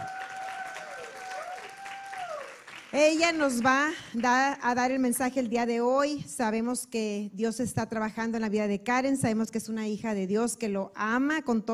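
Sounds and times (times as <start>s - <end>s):
crowd applause: 0.0s - 4.1s
speech: 2.9s - 11.7s.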